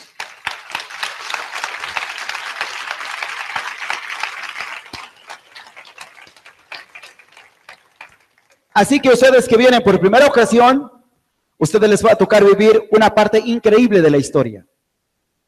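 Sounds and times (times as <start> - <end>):
audience welcome applause: 0.0 - 8.8
speech: 8.8 - 10.9, 11.6 - 14.7.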